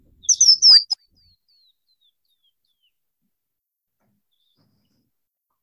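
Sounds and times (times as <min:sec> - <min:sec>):
canyon wren song: 0:00.3 - 0:01.0.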